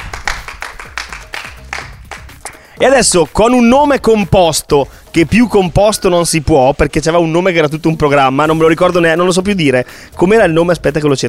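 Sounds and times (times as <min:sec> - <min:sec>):
audience clapping at an Italian event after a presentation: 0:00.0 - 0:02.8
speech: 0:02.8 - 0:11.2.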